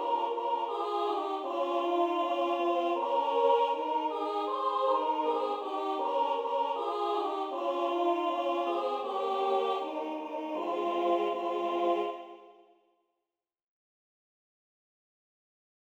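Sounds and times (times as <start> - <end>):
people singing Moldovan carols: 0.0 - 12.7.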